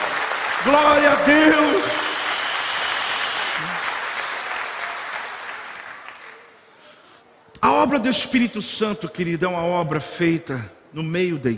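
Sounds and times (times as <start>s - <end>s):
audience applause: 0.0s - 6.5s
speech: 0.6s - 2.0s, 7.9s - 11.5s.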